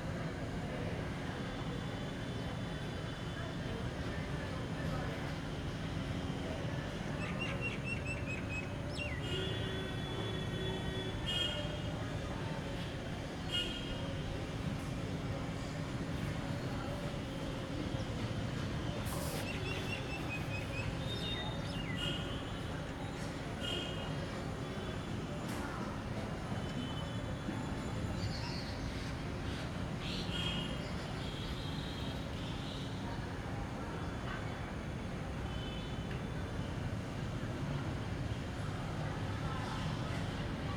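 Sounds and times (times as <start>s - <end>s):
morning traffic in North India: 0.5s - 40.7s.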